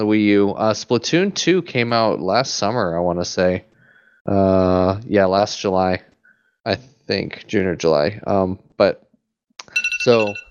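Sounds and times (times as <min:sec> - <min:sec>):
speech: 0:00.0 - 0:09.0, 0:10.0 - 0:10.4
alarm ringing: 0:09.6 - 0:10.4.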